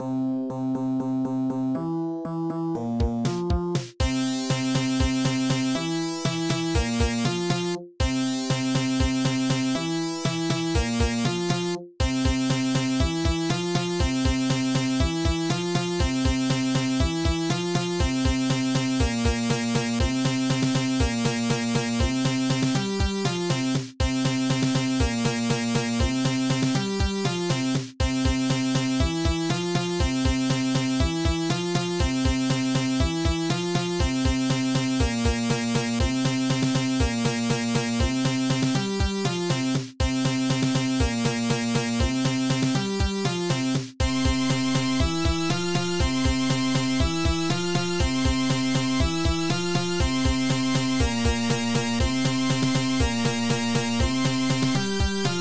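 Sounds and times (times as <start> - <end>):
Sega-style FM synth remix: 0.0 - 55.3.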